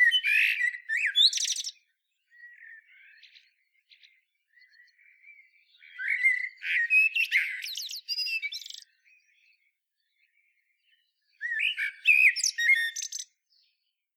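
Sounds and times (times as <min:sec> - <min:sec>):
Eurasian blackbird song: 0:00.0 - 0:13.9.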